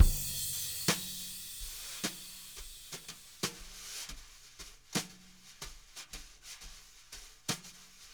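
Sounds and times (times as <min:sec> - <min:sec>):
jazz brush drum loop: 0:00.0 - 0:03.2.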